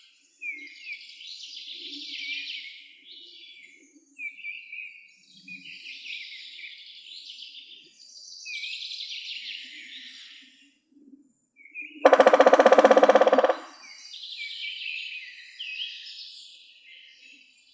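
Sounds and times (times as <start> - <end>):
small songbirds twittering: 12.1 - 13.8
woodpecker drumming: 12.1 - 13.8.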